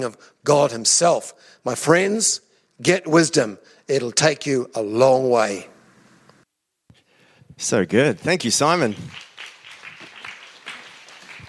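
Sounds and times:
speech: 0:00.0 - 0:05.7, 0:07.6 - 0:09.3
audience clapping: 0:08.4 - 0:11.4.

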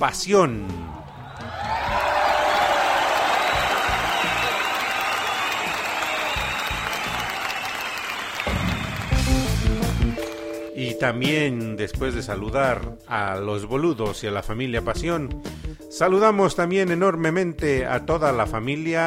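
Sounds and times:
speech: 0:00.0 - 0:00.9, 0:11.0 - 0:19.0
loud applause: 0:00.7 - 0:10.7.

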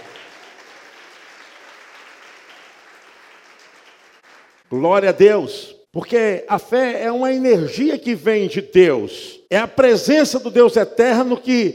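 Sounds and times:
audience applause: 0:00.0 - 0:04.7
speech: 0:04.7 - 0:11.7.

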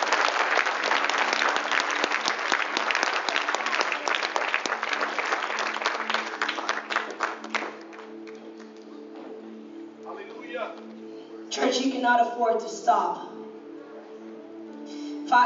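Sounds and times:
audience applause: 0:00.0 - 0:08.7
speech: 0:11.9 - 0:13.3.

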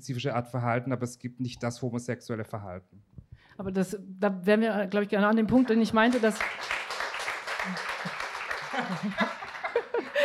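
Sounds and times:
speech: 0:00.0 - 0:06.8, 0:07.7 - 0:07.9, 0:08.8 - 0:09.3
audience applause: 0:06.1 - 0:10.2
laughter: 0:08.0 - 0:10.2.

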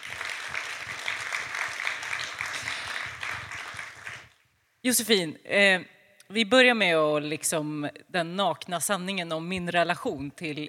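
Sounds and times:
applause: 0:00.0 - 0:04.4
speech: 0:04.8 - 0:10.6.

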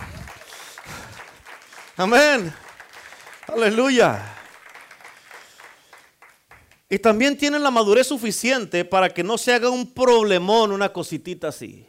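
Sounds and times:
audience applause: 0:00.0 - 0:06.9
speech: 0:02.0 - 0:02.6, 0:03.5 - 0:04.4, 0:06.9 - 0:11.8.

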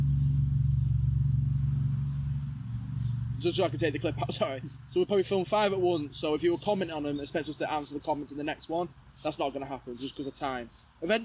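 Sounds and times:
loud revving car engine: 0:00.0 - 0:06.7
speech: 0:03.4 - 0:11.2.

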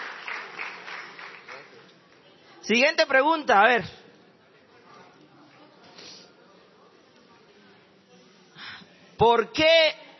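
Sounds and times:
crowd clapping: 0:00.0 - 0:02.2
speech: 0:02.6 - 0:04.0, 0:09.2 - 0:10.0.

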